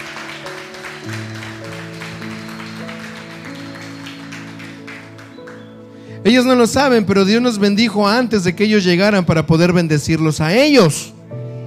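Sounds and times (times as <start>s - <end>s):
audience applause: 0.0s - 5.7s
speech: 6.2s - 11.2s.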